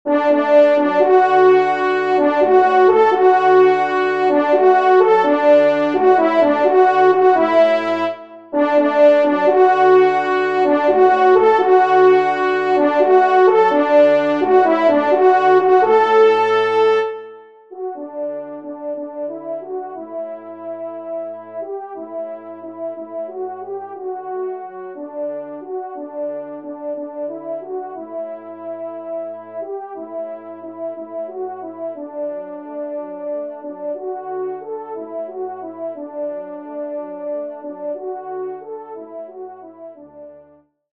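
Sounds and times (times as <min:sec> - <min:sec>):
horn: 0:00.1 - 0:40.6.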